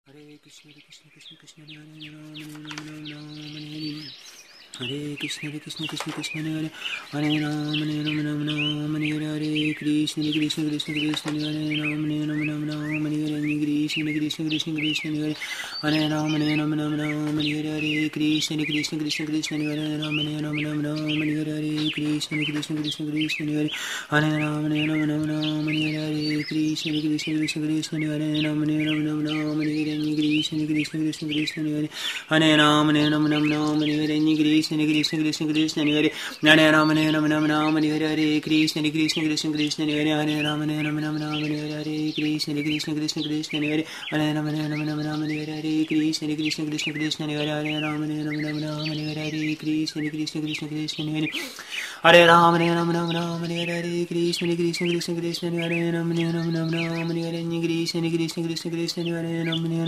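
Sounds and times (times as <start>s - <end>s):
birds singing: 0.0s - 59.8s
person chanting japa: 0.0s - 59.8s.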